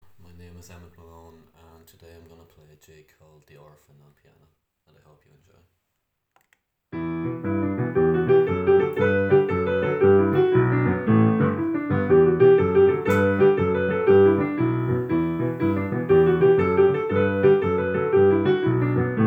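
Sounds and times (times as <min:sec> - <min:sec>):
jig on piano: 0:07.0 - 0:19.2.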